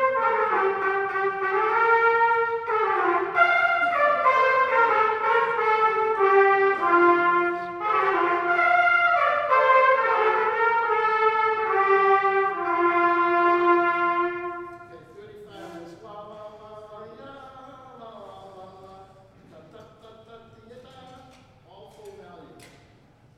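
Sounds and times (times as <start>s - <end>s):
brass band playing a parade tune: 0.0s - 15.8s.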